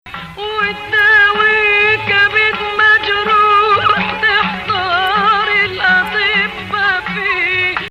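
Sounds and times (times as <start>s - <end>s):
Arabic maqam music: 0.1s - 7.8s.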